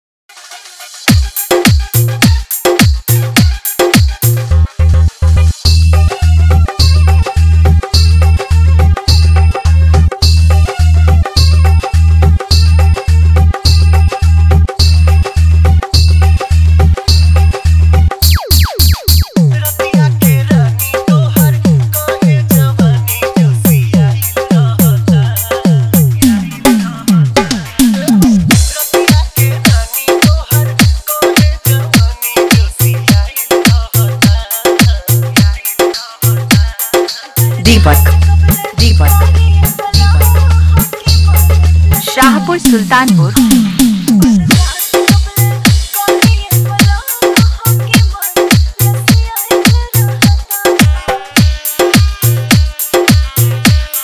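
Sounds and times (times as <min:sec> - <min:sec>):
hi-fi dholki beat mix: 0:01.0 - 0:54.0.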